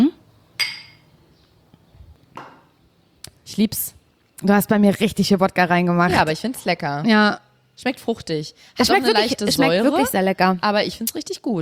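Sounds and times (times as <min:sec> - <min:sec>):
glasses of a vodka cocktail clinking in a toast: 0:00.6 - 0:01.1
speech: 0:03.5 - 0:11.5.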